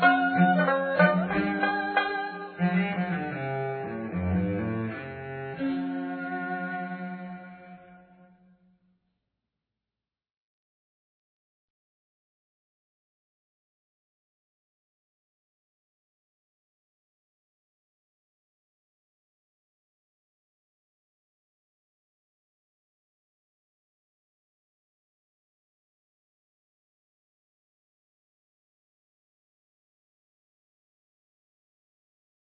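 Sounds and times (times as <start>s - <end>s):
background music: 0.0s - 8.3s.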